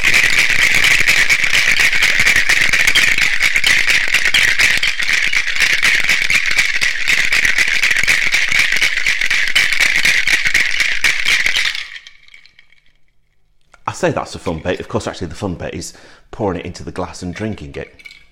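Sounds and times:
cocktail shaker being shaken: 0.0s - 13.0s, 17.3s - 18.3s
speech: 14.0s - 18.0s.

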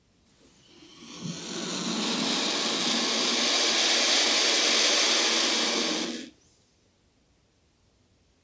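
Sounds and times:
turkey vulture hissing: 0.5s - 6.4s.

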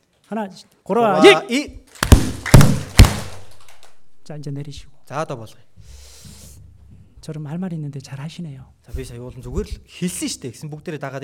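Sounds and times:
speech: 0.3s - 2.7s, 4.3s - 6.0s, 7.2s - 11.2s
audience clapping: 2.3s - 4.0s.

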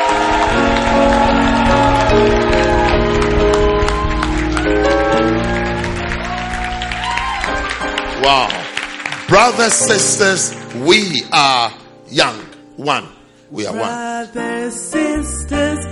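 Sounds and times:
church congregation clapping: 0.0s - 11.7s
loud music with sustained tones: 0.0s - 12.4s
speech: 8.2s - 8.6s, 9.3s - 15.9s.

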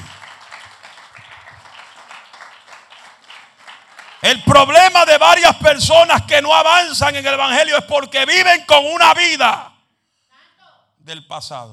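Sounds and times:
audience applause: 0.0s - 4.4s
speech: 4.3s - 9.7s, 11.1s - 11.7s.

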